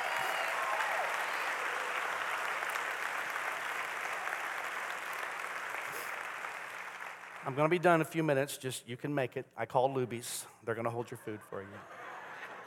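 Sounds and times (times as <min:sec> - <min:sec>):
audience applause: 0:00.0 - 0:07.8
speech: 0:07.4 - 0:12.0
laughter: 0:10.9 - 0:12.6.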